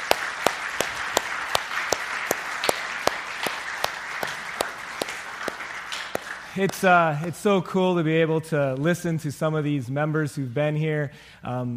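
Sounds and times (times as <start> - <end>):
audience round of applause: 0.0 - 7.3
speech: 6.6 - 11.7.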